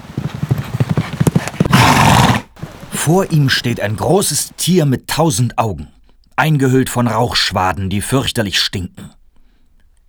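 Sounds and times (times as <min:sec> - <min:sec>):
horse galloping: 0:00.0 - 0:04.5
speech: 0:03.0 - 0:09.2.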